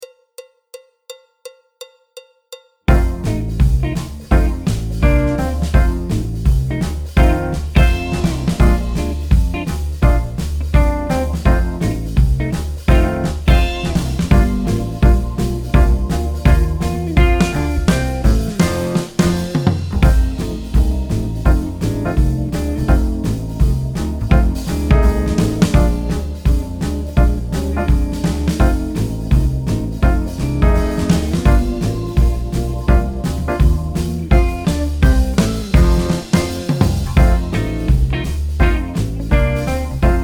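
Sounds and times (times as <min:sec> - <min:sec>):
jazz backing track: 0:02.9 - 0:40.2.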